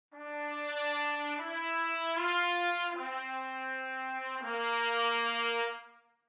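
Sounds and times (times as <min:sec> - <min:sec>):
brass section of three trumpets playing legato: 0:00.2 - 0:06.0.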